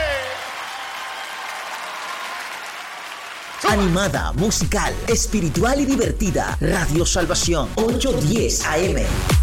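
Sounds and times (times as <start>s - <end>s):
audience applause at an evening Christian gathering: 0.0s - 4.2s
speech: 3.6s - 9.4s.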